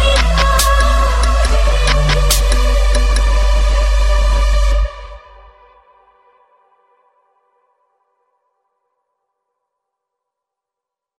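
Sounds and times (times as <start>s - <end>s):
dubstep music: 0.0s - 5.4s.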